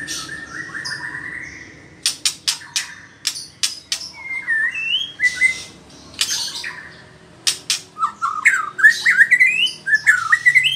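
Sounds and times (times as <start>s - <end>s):
White-rumped shama song: 2.0s - 10.7s.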